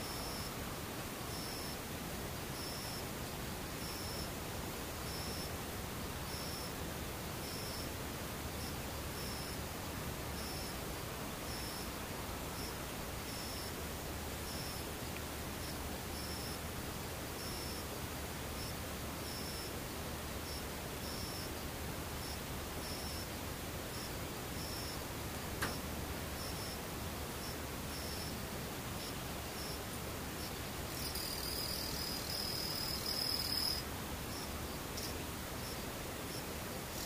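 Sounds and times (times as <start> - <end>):
insects trilling: 0.0 - 0.5, 1.3 - 1.8, 2.6 - 3.0, 3.8 - 4.3, 5.1 - 5.5, 6.3 - 6.7, 7.4 - 7.9, 8.6 - 9.6, 10.4 - 10.8, 11.5 - 13.8, 14.4 - 14.8, 15.6 - 16.6, 17.4 - 17.9, 18.6 - 19.7, 20.5 - 23.3, 23.9 - 25.0, 26.4 - 26.8, 27.4 - 28.4, 29.0 - 37.0
insect buzz: 0.0 - 0.6, 1.3 - 1.8, 2.6 - 3.1, 3.8 - 4.3, 5.0 - 5.5, 6.2 - 6.8, 7.4 - 7.9, 8.5 - 9.6, 10.4 - 10.8, 11.4 - 13.8, 14.4 - 16.7, 17.4 - 17.9, 18.6 - 19.7, 20.4 - 23.3, 23.9 - 25.0, 25.6 - 37.0
faint hiss: 0.0 - 37.0.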